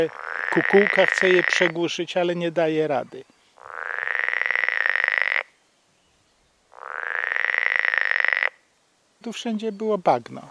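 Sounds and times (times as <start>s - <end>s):
frogs croaking in a pond: 0.0s - 2.0s, 3.2s - 5.6s, 6.5s - 8.7s, 10.4s - 10.5s
speech: 0.0s - 3.4s, 9.2s - 10.5s.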